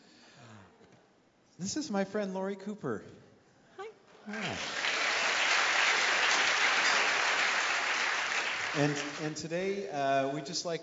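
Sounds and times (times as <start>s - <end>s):
speech: 1.6s - 3.2s, 4.3s - 4.8s, 8.7s - 10.8s
audience applause: 4.3s - 9.5s.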